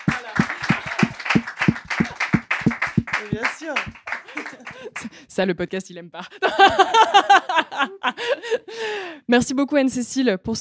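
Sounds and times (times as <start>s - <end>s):
laughter: 0.0s - 2.5s, 3.1s - 5.2s, 6.3s - 8.8s
audience applause: 0.0s - 5.1s
voices calling out and cheering: 0.0s - 5.1s
speech: 3.7s - 4.0s, 5.4s - 10.5s.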